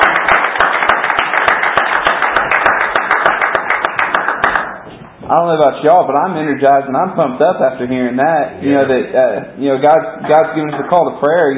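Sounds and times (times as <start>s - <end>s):
audience clapping hands in praise: 0.0s - 4.9s
speech: 5.3s - 11.5s.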